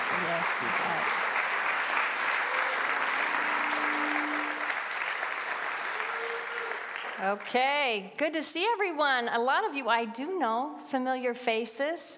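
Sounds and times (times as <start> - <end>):
audience applause greeting a woman at a Heartland gathering: 0.0 - 7.6
speech: 7.2 - 12.1.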